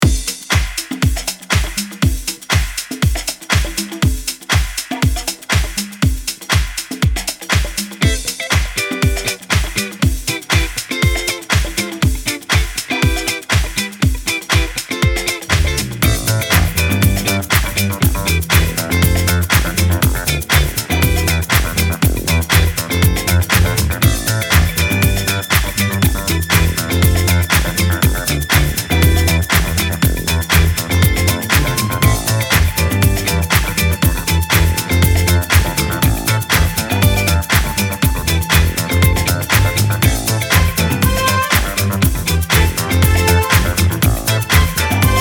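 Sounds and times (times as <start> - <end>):
120 BPM disco music: 0.0 - 45.1.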